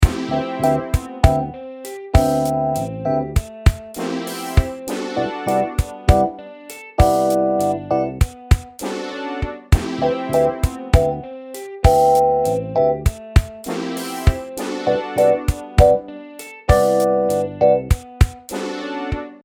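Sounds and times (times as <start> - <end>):
Rhodes electric piano: 0.0 - 6.4, 7.0 - 8.4, 10.0 - 16.1, 16.7 - 18.0.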